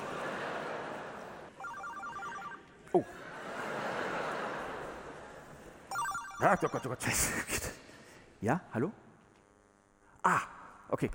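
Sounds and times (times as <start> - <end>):
laughter: 0.0 - 1.6, 2.9 - 5.9
noise: 0.0 - 11.1
mobile phone ringing: 1.6 - 2.7, 5.9 - 7.2
speech: 2.9 - 3.2, 6.4 - 7.8, 8.4 - 9.0, 10.2 - 11.1.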